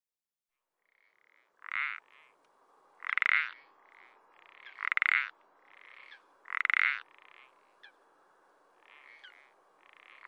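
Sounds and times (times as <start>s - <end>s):
parsley frog rasping pulsed croaks in France: 0.8s - 2.4s, 3.0s - 8.0s, 8.8s - 10.2s.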